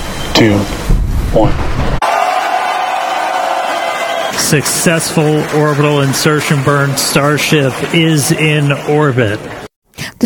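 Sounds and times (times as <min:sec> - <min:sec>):
speech: 0:00.4 - 0:02.0, 0:04.4 - 0:09.6
mission control staff cheering as Starship reaches orbit: 0:02.0 - 0:09.7.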